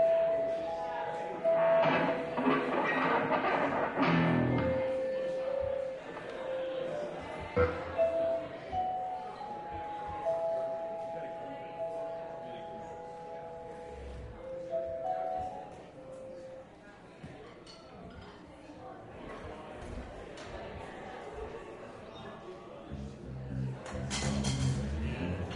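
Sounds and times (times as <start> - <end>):
ambient crowd noise: 0.0 - 25.5.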